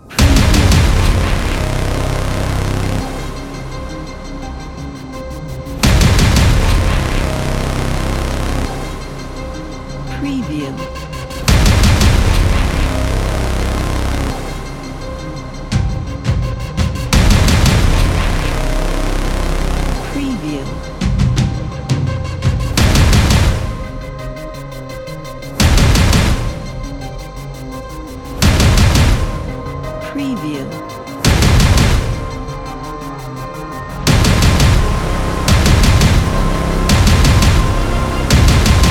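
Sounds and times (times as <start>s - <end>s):
dark trailer impact: 0.0s - 38.8s.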